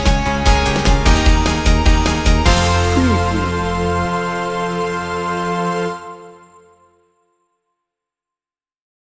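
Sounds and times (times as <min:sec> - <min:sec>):
upbeat inspirational music: 0:00.0 - 0:05.4.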